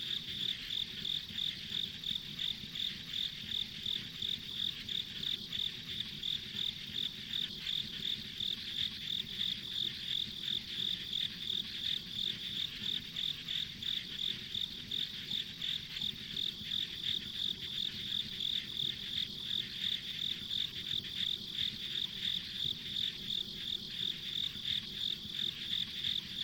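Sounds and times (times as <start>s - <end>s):
insect chirping: 0.0s - 26.4s.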